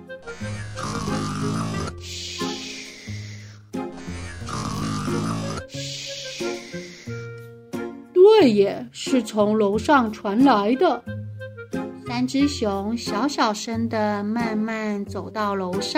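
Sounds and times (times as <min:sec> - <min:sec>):
snoring: 0:00.3 - 0:07.0
speech: 0:08.4 - 0:11.2, 0:12.2 - 0:15.9.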